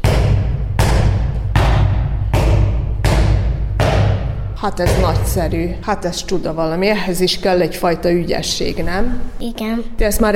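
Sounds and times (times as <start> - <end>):
handball bouncing on floor: 0.0 - 6.0
speech: 4.6 - 10.3.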